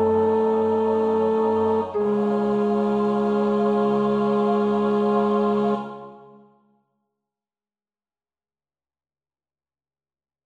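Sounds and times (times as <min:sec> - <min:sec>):
tenor voice singing a prayer practice track: 0:00.0 - 0:06.4.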